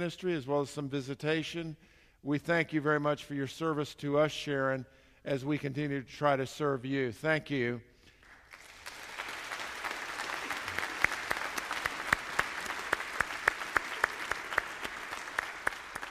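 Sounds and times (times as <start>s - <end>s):
speech: 0.0s - 7.9s
audience applause: 8.2s - 16.0s.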